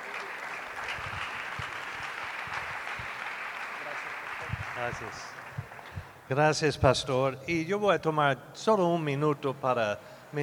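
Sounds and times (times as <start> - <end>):
audience applause: 0.0 - 5.9
speech: 4.8 - 5.4, 6.3 - 10.4.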